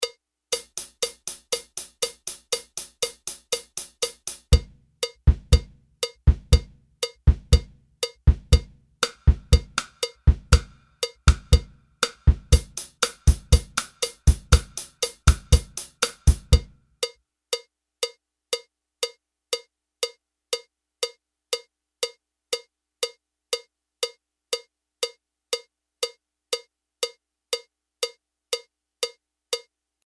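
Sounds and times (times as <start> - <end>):
basic bossa beat on a jazz drum kit: 0.5 - 16.8.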